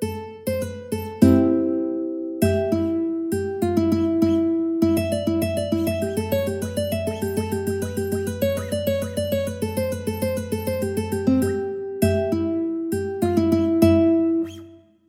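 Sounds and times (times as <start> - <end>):
ukulele melody: 0.0 - 14.7.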